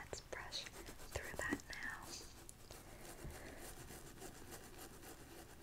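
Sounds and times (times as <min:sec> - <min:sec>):
fingers rubbing and scratching through hair in a scalp massage: 0:00.2 - 0:05.5.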